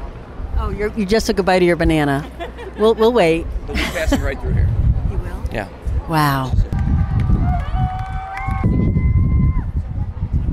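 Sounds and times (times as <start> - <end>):
speech: 0.7 - 4.9, 5.5 - 6.7
laughter: 2.2 - 4.4
crowd cheering: 6.6 - 9.8.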